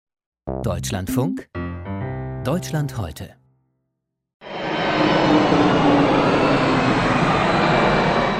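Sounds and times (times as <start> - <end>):
speech: 0.6 - 1.6, 2.4 - 3.4
airplane on landing approach, about 85 decibels: 4.4 - 8.3.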